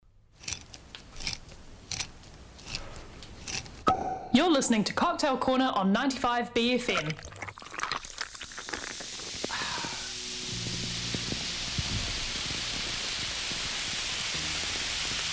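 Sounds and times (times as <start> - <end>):
speech: 4.4 - 7.3
fizzy drink fizzing: 6.9 - 15.3.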